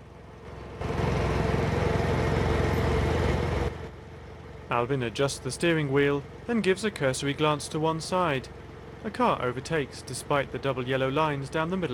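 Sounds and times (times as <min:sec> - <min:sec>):
John Deere riding mower engine chugging along a desolate road: 0:00.0 - 0:11.9
speech: 0:04.7 - 0:11.9.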